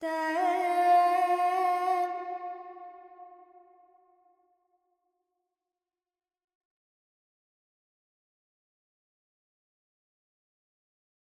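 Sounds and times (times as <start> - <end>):
Carnatic female vocal alaps in Dorian: 0.0 - 2.8.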